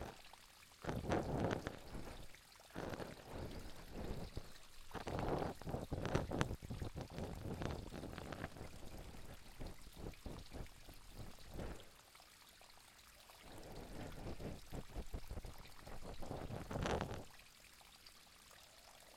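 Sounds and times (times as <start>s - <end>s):
ASMR ear cleaning without background music: 0.8s - 11.8s, 13.7s - 17.3s.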